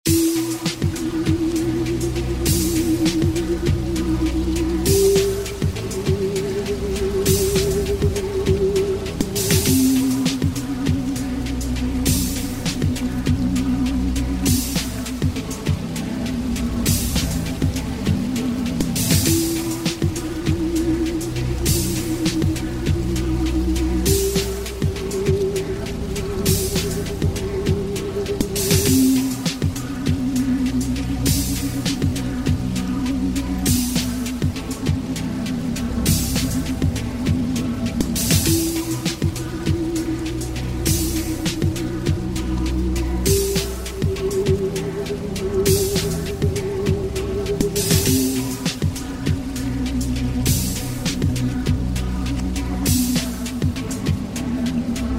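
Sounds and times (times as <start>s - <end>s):
music beat: 0.1s - 55.1s.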